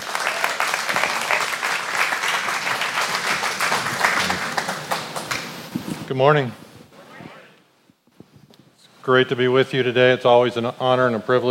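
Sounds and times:
church congregation applauding to welcome a guest preacher: 0:00.0 - 0:05.6
speech: 0:06.1 - 0:06.6, 0:09.1 - 0:11.4.

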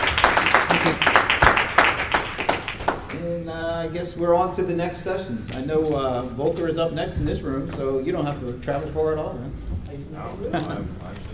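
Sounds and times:
audience applause for panelists: 0:00.0 - 0:03.2
speech: 0:03.2 - 0:11.3.

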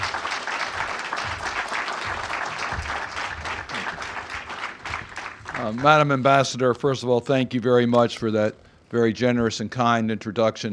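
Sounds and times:
audience applause: 0:00.0 - 0:06.2
speech: 0:05.6 - 0:10.7.

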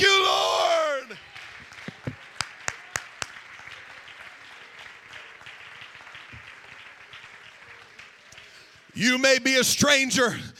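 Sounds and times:
crowd clapping hands: 0:01.1 - 0:09.2
speech: 0:09.0 - 0:10.5.

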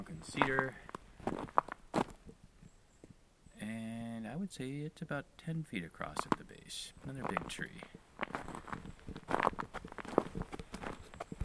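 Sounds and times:
speech: 0:00.0 - 0:01.6, 0:04.4 - 0:08.0
footsteps on gravel: 0:00.2 - 0:02.2, 0:06.2 - 0:11.4.

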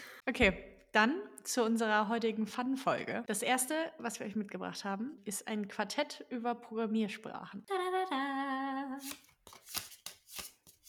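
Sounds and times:
speech: 0:00.3 - 0:08.3, 0:09.0 - 0:09.2
shuffling a deck of playing cards for a programming languages quartet game: 0:09.0 - 0:10.8.

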